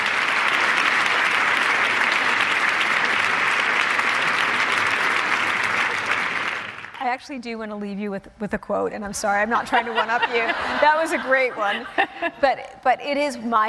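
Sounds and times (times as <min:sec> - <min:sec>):
audience applause: 0:00.0 - 0:07.0
speech: 0:07.1 - 0:13.6
laughter: 0:09.6 - 0:12.6.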